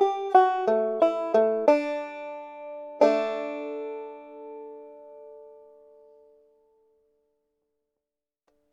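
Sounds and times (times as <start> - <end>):
folk tune melody in D major: 0.0 - 6.6.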